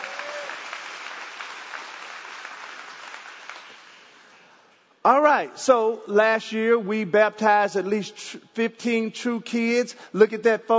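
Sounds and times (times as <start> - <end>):
crowd clapping: 0.0 - 4.5
person speaking loudly: 5.0 - 10.7
speech: 5.0 - 10.7.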